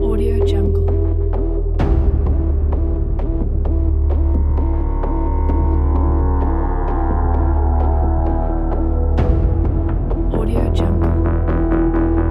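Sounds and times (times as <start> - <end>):
deadly tense urgent medical crime music: 0.0 - 12.2.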